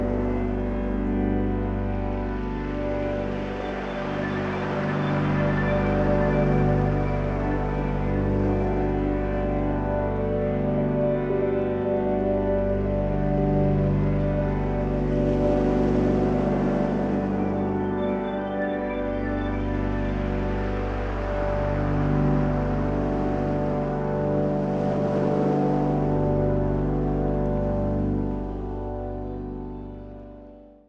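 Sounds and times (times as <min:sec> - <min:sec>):
meditation soundscape: 0:00.0 - 0:30.8.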